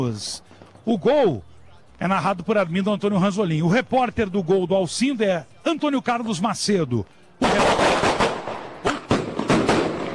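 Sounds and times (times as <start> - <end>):
speech: 0.0 - 8.1
firework rocket exploding: 7.4 - 10.1.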